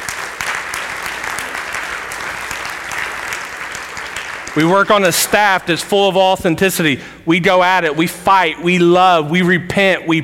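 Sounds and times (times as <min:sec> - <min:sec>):
audience applause: 0:00.0 - 0:05.6
speech: 0:04.6 - 0:10.2.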